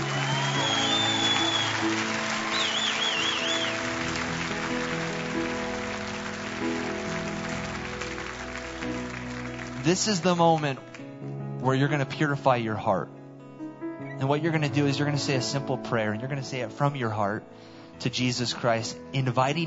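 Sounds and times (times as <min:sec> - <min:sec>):
audience applause: 0:00.0 - 0:11.1
speech: 0:09.9 - 0:10.9, 0:11.6 - 0:13.2, 0:14.2 - 0:19.6.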